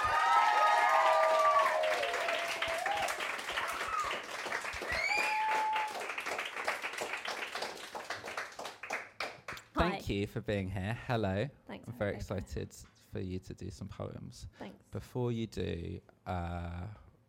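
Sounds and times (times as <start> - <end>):
audience whoops and cheers: 0.0 - 6.2
audience applause: 0.0 - 9.6
speech: 10.1 - 17.0.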